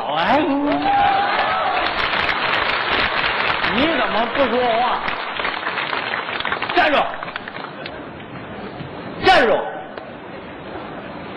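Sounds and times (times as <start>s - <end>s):
audience applause: 0.7s - 7.8s
speech: 3.8s - 5.2s, 6.8s - 7.2s, 9.4s - 9.7s.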